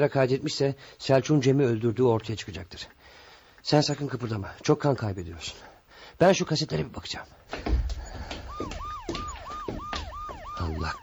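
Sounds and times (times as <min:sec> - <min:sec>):
speech: 0:00.0 - 0:07.8, 0:10.7 - 0:11.0
police car sirens approaching: 0:07.8 - 0:11.0.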